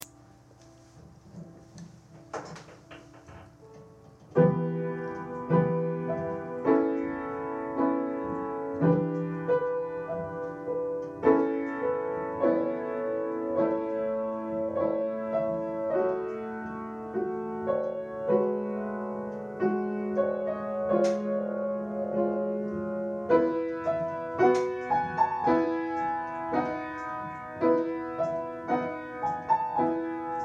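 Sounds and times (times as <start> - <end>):
sad piano song: 0.0 - 30.4.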